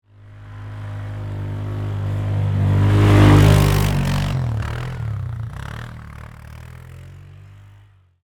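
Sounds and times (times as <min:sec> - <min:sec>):
Polaris 500cc four-wheeler ATV passing by fast: 0:00.1 - 0:08.2.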